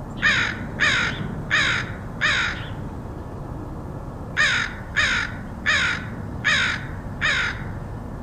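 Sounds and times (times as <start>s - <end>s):
crow cawing: 0.2s - 2.8s, 4.4s - 7.8s.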